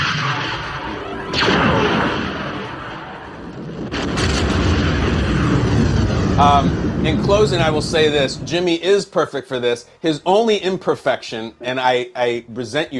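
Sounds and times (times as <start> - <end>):
heavy laser-blast sound effect: 0.0 - 8.5
speech: 6.4 - 12.9.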